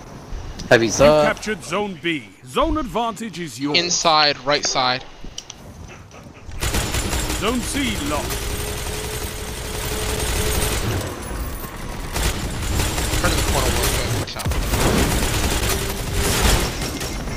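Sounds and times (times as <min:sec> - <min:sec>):
speech: 0:00.7 - 0:05.2, 0:07.4 - 0:08.5
automatic gunfire in a team-based zone-capture shooter video game: 0:06.6 - 0:11.1, 0:12.0 - 0:17.3
explosions in a shooter video game: 0:10.6 - 0:17.3.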